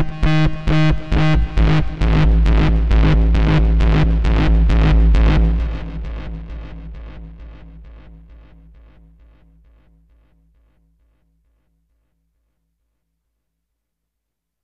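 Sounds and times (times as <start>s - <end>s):
noise dance improvisation: 0.0s - 10.8s.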